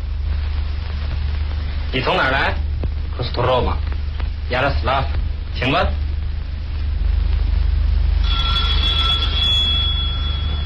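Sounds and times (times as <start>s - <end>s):
steady low rumble: 0.0s - 10.6s
speech: 1.9s - 3.9s, 4.5s - 6.0s
electric doorbell ringing: 8.2s - 10.6s.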